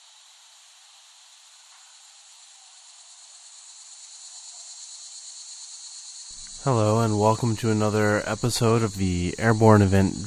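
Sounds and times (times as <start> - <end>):
cicadas buzzing: 0.0 - 10.2
speech: 6.4 - 10.2.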